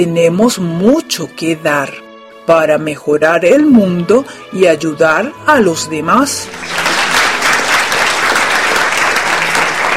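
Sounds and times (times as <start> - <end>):
speech: 0.0 - 6.8
standing audience applauding: 6.5 - 9.9.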